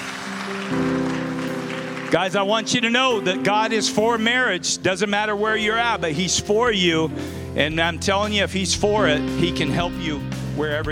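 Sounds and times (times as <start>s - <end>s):
audience hand clapping: 0.0s - 2.9s
speech: 2.1s - 10.9s.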